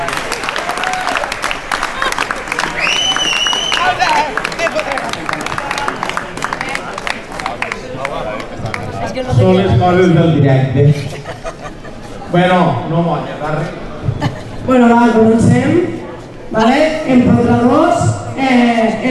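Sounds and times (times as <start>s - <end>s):
audience applause: 0.0s - 8.9s
whoops and cheering voices: 0.4s - 1.4s, 2.6s - 4.3s
laughter: 1.7s - 2.8s, 10.8s - 12.7s, 13.6s - 14.7s
speech: 9.4s - 11.1s, 12.3s - 13.8s, 14.7s - 19.0s.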